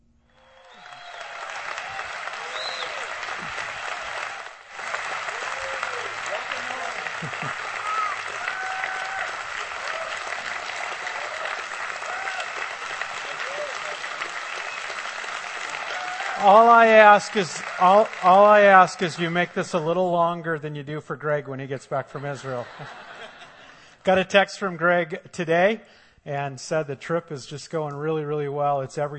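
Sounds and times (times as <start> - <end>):
audience applause welcoming a guest speaker: 0.4 - 20.0
laughter: 4.8 - 14.8, 16.3 - 20.1, 22.0 - 23.9
speech: 16.4 - 23.0, 24.0 - 29.1.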